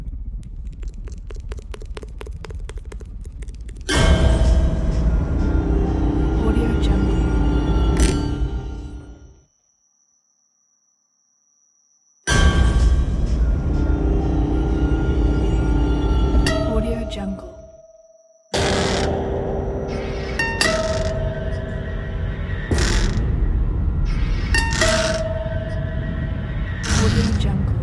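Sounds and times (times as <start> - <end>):
art house experimental horror trailer music: 3.9 - 9.4, 12.3 - 17.8, 18.5 - 27.8.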